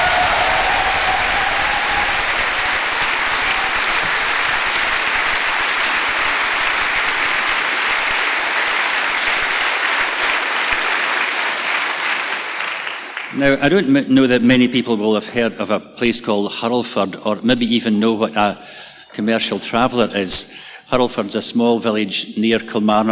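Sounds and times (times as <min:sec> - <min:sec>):
audience at Greenbelt clapping: 0:00.0 - 0:13.8
speech: 0:13.4 - 0:23.1.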